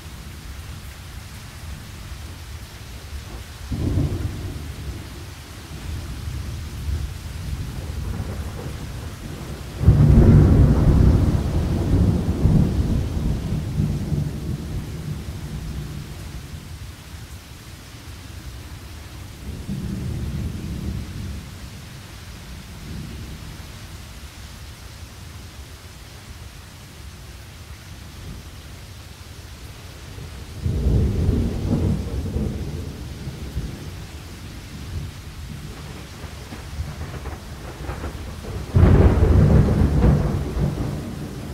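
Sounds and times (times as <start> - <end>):
thunderstorm: 3.0 - 16.8, 19.3 - 23.7, 30.1 - 41.5.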